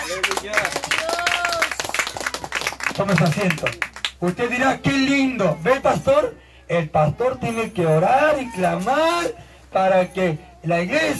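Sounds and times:
audience clapping hands: 0:00.0 - 0:04.5
speech: 0:03.0 - 0:11.1.

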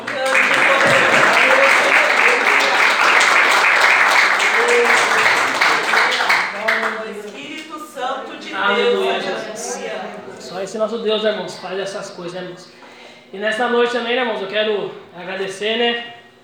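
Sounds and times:
audience applause: 0:00.0 - 0:07.3
laughter: 0:00.0 - 0:10.6
speech: 0:10.7 - 0:16.1.

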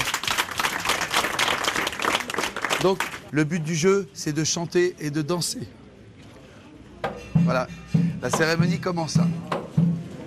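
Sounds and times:
audience applause: 0:00.0 - 0:03.3
speech: 0:02.8 - 0:05.8, 0:07.5 - 0:09.6.

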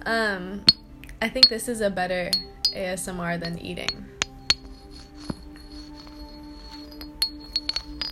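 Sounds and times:
speech: 0:00.1 - 0:04.1
hard stones knocking together: 0:04.1 - 0:08.1.

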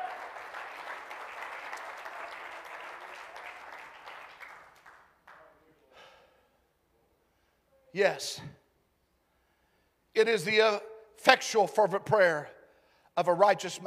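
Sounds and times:
audience clapping hands: 0:00.0 - 0:05.7
speech: 0:08.0 - 0:08.6, 0:10.2 - 0:12.6, 0:13.2 - 0:13.8.

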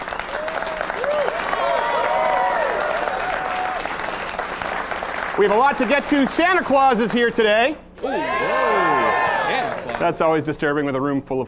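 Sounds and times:
round of applause: 0:00.0 - 0:07.2, 0:09.0 - 0:10.2
speech: 0:05.4 - 0:08.7, 0:09.5 - 0:11.4.

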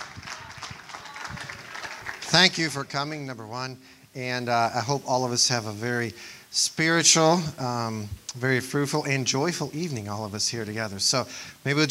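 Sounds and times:
audience applause: 0:00.0 - 0:03.0
speech: 0:02.3 - 0:11.8.

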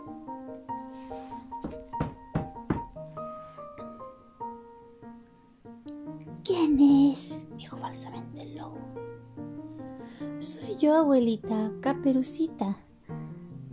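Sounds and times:
gentle instrumental music: 0:00.0 - 0:13.7
knocking on a door: 0:01.6 - 0:03.1
speech: 0:06.5 - 0:09.1, 0:10.4 - 0:12.8.

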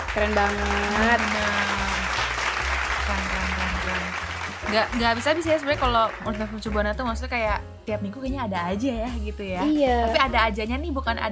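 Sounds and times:
applause: 0:00.0 - 0:07.0
speech: 0:00.2 - 0:01.7, 0:03.1 - 0:11.2.

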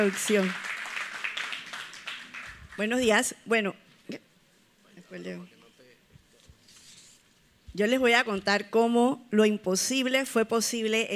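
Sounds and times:
speech: 0:00.0 - 0:00.7, 0:02.8 - 0:04.3, 0:05.1 - 0:05.6, 0:07.8 - 0:11.1
audience applause: 0:00.0 - 0:02.8.

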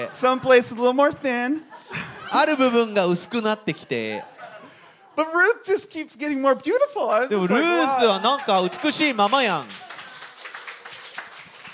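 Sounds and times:
speech: 0:00.0 - 0:04.3, 0:05.2 - 0:09.9
laughter: 0:00.0 - 0:05.8, 0:07.3 - 0:11.2
audience clapping: 0:07.5 - 0:11.7.

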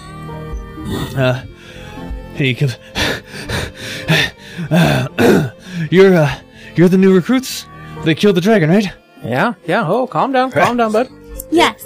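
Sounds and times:
speech: 0:00.9 - 0:01.8, 0:02.4 - 0:03.5, 0:04.1 - 0:11.8
voice imitating a hurried squire's heavy out-of-breath panting: 0:02.8 - 0:06.8.

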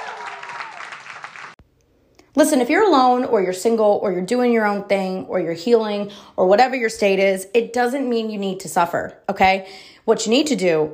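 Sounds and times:
crowd applauding: 0:00.0 - 0:01.6
speech: 0:02.4 - 0:10.9.

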